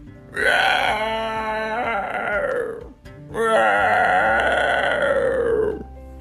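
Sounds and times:
voice imitating dragon roars: 0.4s - 5.8s.

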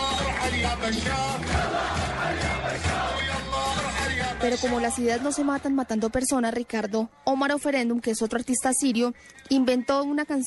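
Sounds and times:
large protest crowd chanting a rallying cry: 0.0s - 6.2s
speech: 0.6s - 10.4s.

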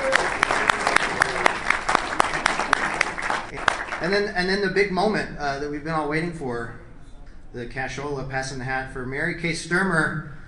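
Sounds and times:
round of applause: 0.0s - 4.1s
speech: 4.1s - 6.8s, 7.5s - 10.4s.

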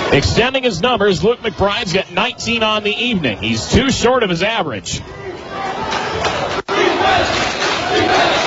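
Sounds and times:
speech: 0.1s - 5.8s
Norwell student section chanting for defense at a high school basketball game: 5.6s - 8.4s.

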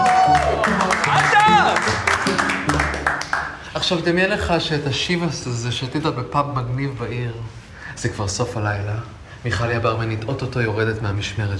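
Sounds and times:
group clapping: 0.0s - 3.7s
speech: 3.9s - 11.5s.

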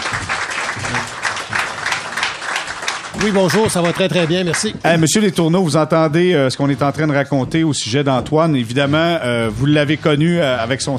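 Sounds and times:
audience applause: 0.0s - 5.2s
speech: 3.2s - 10.9s.

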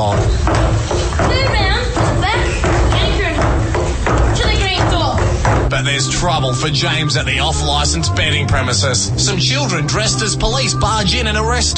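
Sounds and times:
hammering of shoe cobbling: 0.0s - 6.4s
speech: 5.9s - 11.7s.

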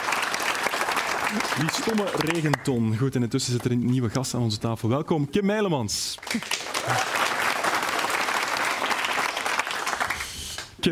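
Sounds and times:
studio audience applause at a sports talk show: 0.0s - 2.8s, 6.2s - 10.8s
speech: 1.3s - 7.2s.

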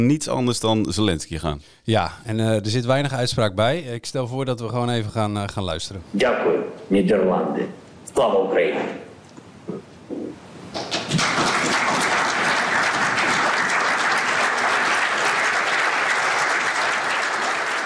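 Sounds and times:
speech: 0.0s - 9.0s
parliament members applauding: 10.8s - 17.8s.

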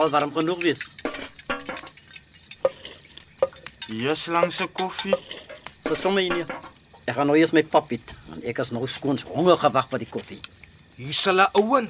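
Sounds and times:
speech: 0.0s - 1.1s, 3.9s - 11.8s
spoon clinking against a coffee cup: 0.0s - 6.8s.

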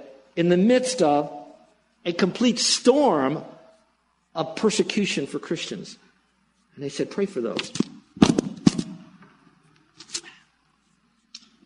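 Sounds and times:
speech: 0.4s - 1.4s, 2.0s - 3.6s, 4.4s - 6.0s, 6.8s - 8.3s
microphone handling noise: 7.5s - 9.3s
microphone knocked off glasses thumping: 7.6s - 9.4s.

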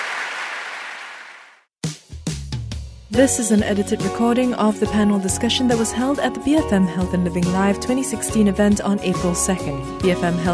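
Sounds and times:
audience applause for panelists: 0.0s - 1.6s
speech: 3.1s - 10.5s.

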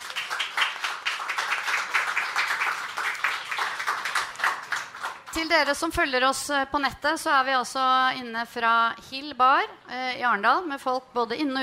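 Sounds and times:
audience applause: 0.0s - 5.3s
speech: 5.4s - 11.6s.

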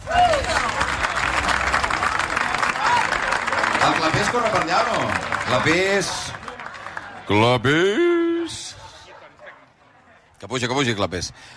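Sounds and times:
audience applause: 0.0s - 7.8s
speech: 3.8s - 6.3s, 7.3s - 8.6s, 10.4s - 11.5s.

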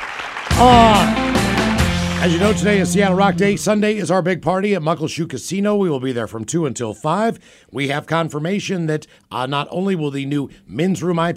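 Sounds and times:
crowd cheering sound effect with shouts and applause: 0.0s - 3.7s
speech: 0.6s - 1.2s, 2.2s - 11.3s.

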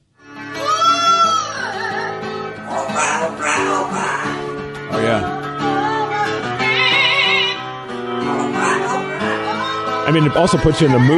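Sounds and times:
parrot singing: 0.6s - 4.6s, 5.2s - 10.0s
speech: 10.1s - 11.1s.

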